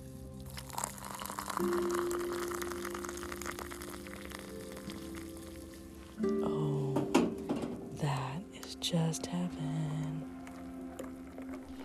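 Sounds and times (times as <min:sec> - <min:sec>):
water for coffee boiling: 0:00.0 - 0:11.8
speech: 0:01.6 - 0:02.2, 0:08.8 - 0:09.9.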